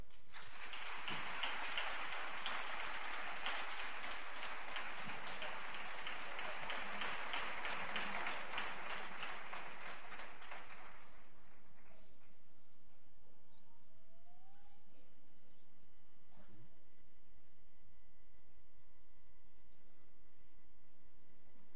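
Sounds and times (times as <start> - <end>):
audience applauding: 0.0 - 12.1.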